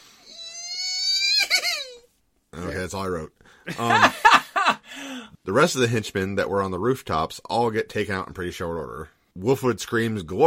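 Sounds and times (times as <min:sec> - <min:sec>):
person squealing excitedly: 0:00.2 - 0:02.1
speech: 0:02.6 - 0:04.4, 0:05.2 - 0:10.4
laughter: 0:03.7 - 0:04.8.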